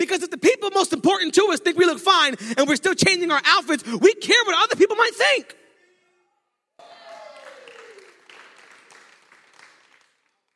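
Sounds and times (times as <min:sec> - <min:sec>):
speech: 0:00.0 - 0:05.6
audience clapping: 0:06.8 - 0:10.5
crowd cheering: 0:06.8 - 0:10.5.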